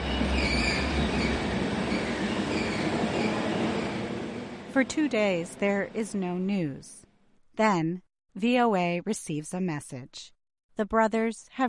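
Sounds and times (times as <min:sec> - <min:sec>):
train wheels squealing: 0:00.0 - 0:04.2
train carriage rolling on rails: 0:00.0 - 0:04.7
speech: 0:04.8 - 0:07.0, 0:07.6 - 0:11.6.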